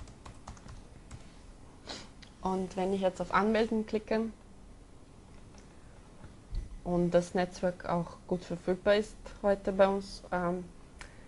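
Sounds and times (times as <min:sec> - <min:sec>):
keystrokes on a computer keyboard typing a username and password: 0:00.0 - 0:01.3
speech: 0:02.4 - 0:04.4, 0:06.9 - 0:10.8.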